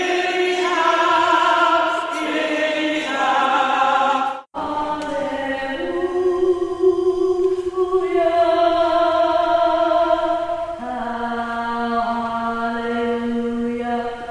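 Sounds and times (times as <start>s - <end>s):
tenor singing: 0.0s - 14.2s.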